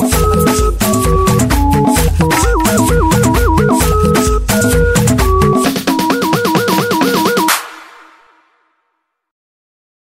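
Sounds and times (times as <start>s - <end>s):
instrumental music: 0.0s - 7.9s.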